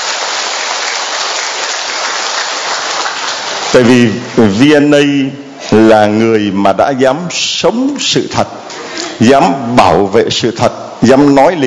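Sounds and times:
audience applause: 0.0s - 4.0s
speech: 3.7s - 11.6s.

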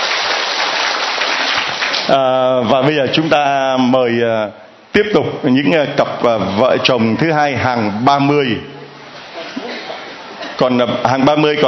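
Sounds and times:
audience applause at an event honouring married couples: 0.0s - 2.1s
speech: 2.1s - 8.7s, 10.6s - 11.6s.

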